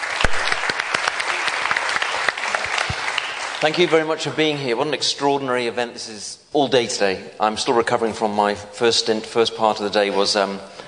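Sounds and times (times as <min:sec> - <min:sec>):
rousing audience applause: 0:00.0 - 0:04.2
speech: 0:03.6 - 0:10.8.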